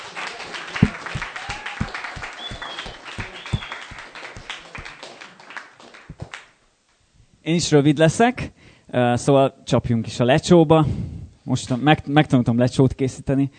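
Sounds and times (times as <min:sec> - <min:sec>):
audience applause: 0:00.0 - 0:06.4
speech: 0:07.4 - 0:13.5.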